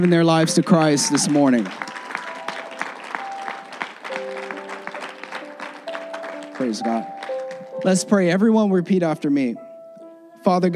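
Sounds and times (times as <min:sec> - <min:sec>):
speech: 0:00.0 - 0:01.9, 0:06.6 - 0:07.1, 0:07.8 - 0:09.6, 0:10.4 - 0:10.7
church audience hand clap: 0:00.0 - 0:08.1.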